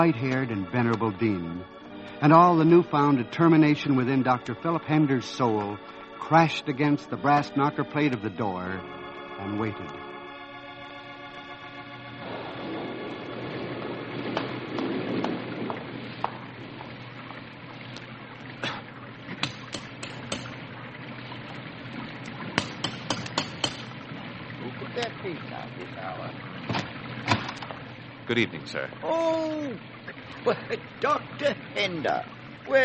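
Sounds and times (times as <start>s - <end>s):
sharp drips and taps: 0.0s - 1.5s, 3.5s - 8.9s, 14.4s - 28.9s
speech: 0.0s - 10.0s, 28.3s - 32.8s
steady pouring rain: 0.0s - 19.5s, 23.9s - 32.8s.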